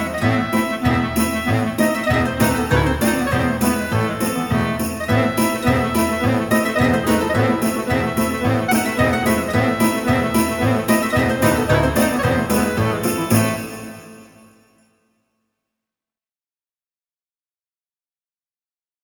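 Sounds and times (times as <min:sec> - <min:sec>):
Jewish music: 0:00.0 - 0:14.6.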